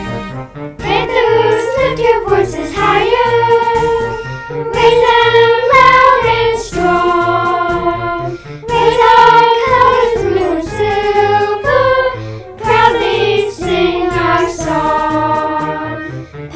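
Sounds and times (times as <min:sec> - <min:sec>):
children singing a school song: 0:00.8 - 0:16.5.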